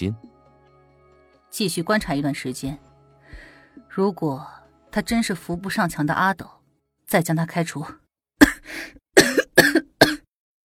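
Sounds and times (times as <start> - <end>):
speech: 0.0 - 0.3, 1.5 - 2.9, 3.9 - 8.0
person coughing: 8.4 - 10.3.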